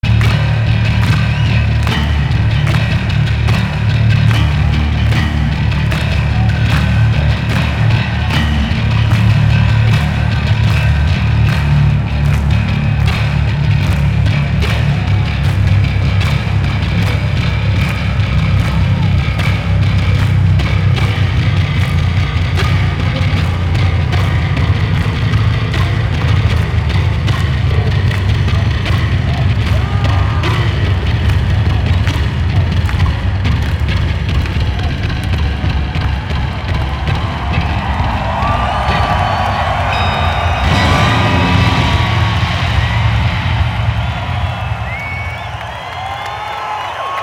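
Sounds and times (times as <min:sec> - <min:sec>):
bass solo: 0:00.0 - 0:47.1.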